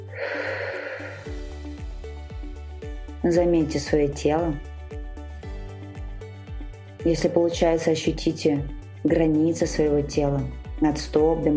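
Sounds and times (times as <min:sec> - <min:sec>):
deep breath drawn in through the nose during an anxiety-relief breathing meditation: 0:00.0 - 0:01.7
soft sustained tonal music with low droning notes: 0:00.0 - 0:11.5
speech: 0:03.2 - 0:04.7, 0:07.0 - 0:11.5.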